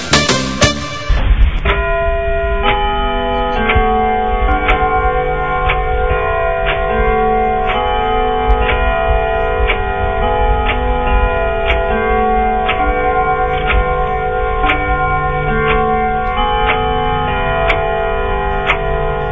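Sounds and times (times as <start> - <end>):
clock in a house chiming: 1.2 - 19.2.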